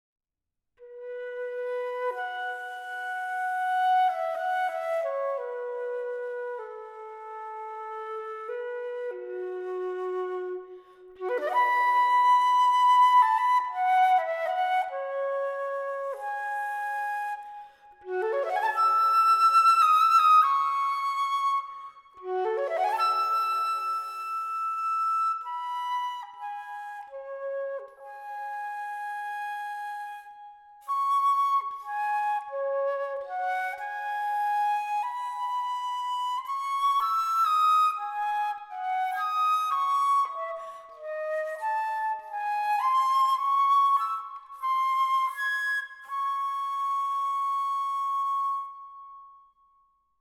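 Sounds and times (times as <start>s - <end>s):
meditative garden music: 0.8s - 49.7s.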